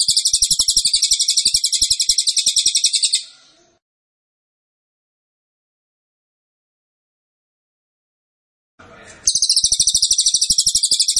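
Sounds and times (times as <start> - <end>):
pygmy bushtit singing a high trill: 0.0 - 3.3, 9.3 - 11.1.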